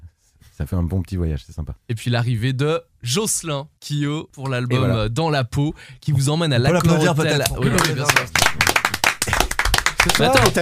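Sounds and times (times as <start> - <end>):
speech: 0.6 - 8.4, 10.0 - 10.6
hand clapping: 6.7 - 10.6.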